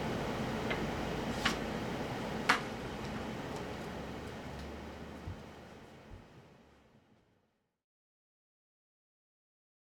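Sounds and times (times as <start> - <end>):
air purifier blowing out air: 0.0 - 7.2.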